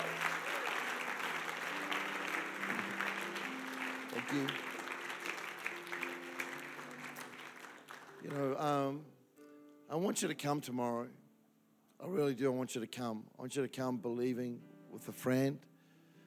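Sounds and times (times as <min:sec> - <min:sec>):
audience clapping: 0:00.0 - 0:08.6
speech: 0:04.2 - 0:04.7, 0:08.2 - 0:09.2, 0:09.9 - 0:11.2, 0:12.0 - 0:15.7.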